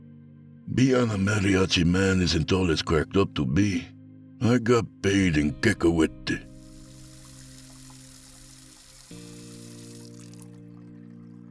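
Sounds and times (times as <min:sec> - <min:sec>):
speech: 0:00.8 - 0:06.5
running tap water while washing dishes: 0:06.4 - 0:11.4.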